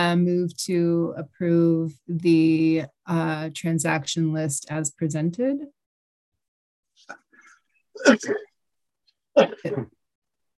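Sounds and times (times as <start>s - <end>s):
speech: 0.0s - 5.8s, 8.0s - 8.5s, 9.4s - 10.0s
person coughing during a meeting: 8.0s - 8.5s.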